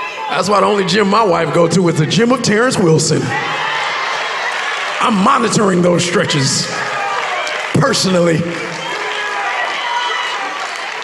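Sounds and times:
men cheering in church: 0.0s - 11.0s
speech: 0.3s - 3.8s, 5.0s - 7.0s, 7.8s - 8.8s.

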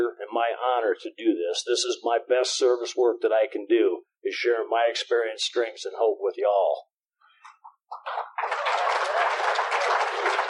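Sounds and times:
speech: 0.0s - 6.9s, 7.9s - 10.4s
audience clapping: 7.9s - 10.4s.

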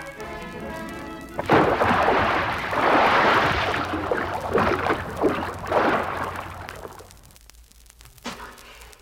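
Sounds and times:
churning surging water: 0.0s - 7.2s
splash of someone diving off a pier into water: 1.4s - 7.1s.

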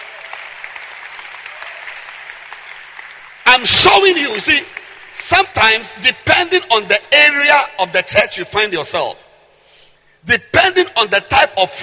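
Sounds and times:
audience clapping hands: 0.0s - 5.8s
speech: 3.6s - 9.2s, 10.2s - 11.8s.

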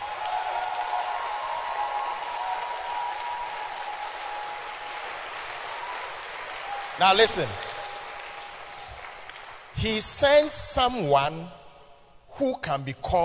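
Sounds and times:
audience applause: 0.0s - 10.1s
speech: 7.0s - 7.6s, 9.8s - 11.6s, 12.4s - 13.2s.

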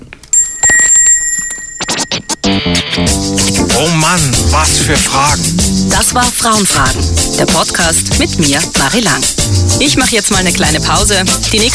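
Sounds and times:
small bell ringing: 0.3s - 2.4s
speech: 2.8s - 11.7s.

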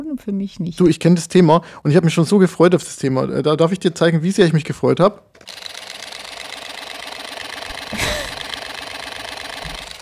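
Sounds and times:
speech: 0.2s - 5.6s
camera shutter firing rapid burst: 5.4s - 10.0s
laughter: 7.9s - 8.5s.

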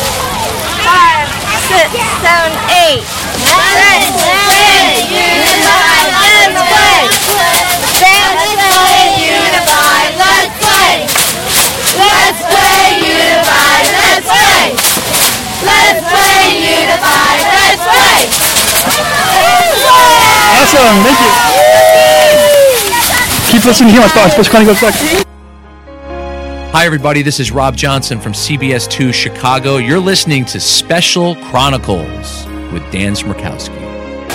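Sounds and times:
crowd giving a final cheer: 0.0s - 25.3s
speech: 1.8s - 5.4s, 20.6s - 22.5s, 23.6s - 25.3s, 26.8s - 33.8s.

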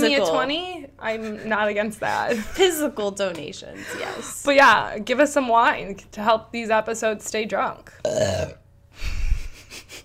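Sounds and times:
speech: 0.1s - 9.2s
burp: 8.0s - 8.7s.

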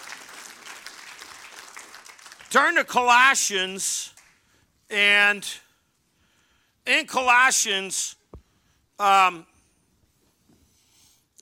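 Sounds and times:
audience applauding: 0.0s - 2.6s
speech: 2.5s - 4.2s, 4.9s - 5.6s, 6.9s - 8.2s, 9.0s - 9.5s.

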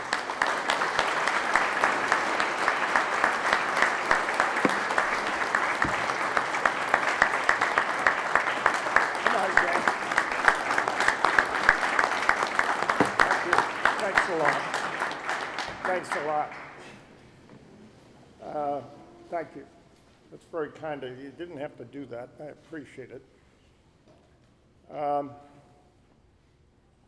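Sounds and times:
audience applause welcoming a speaker at an event in Vermont: 0.0s - 16.8s
speech: 20.7s - 23.4s.

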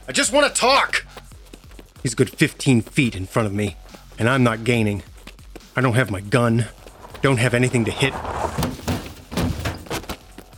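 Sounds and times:
speech: 0.1s - 1.2s, 2.0s - 5.1s, 5.8s - 8.8s
car slamming into a person: 6.8s - 10.3s.

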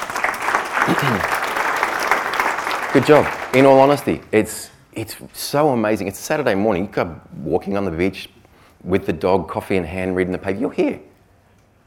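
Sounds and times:
audience applause: 0.0s - 4.1s
speech: 0.8s - 1.4s, 2.9s - 11.1s.

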